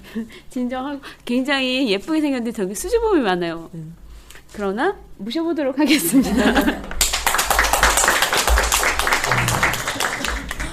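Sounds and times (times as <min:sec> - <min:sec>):
speech: 0:00.1 - 0:06.9
laughter: 0:05.9 - 0:07.0, 0:09.2 - 0:10.7
audience clapping: 0:06.6 - 0:10.7.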